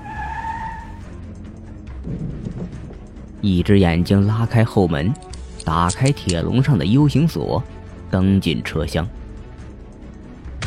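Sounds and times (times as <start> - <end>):
ambulance brakes squealing: 0.0 - 1.2
speech: 3.4 - 9.2.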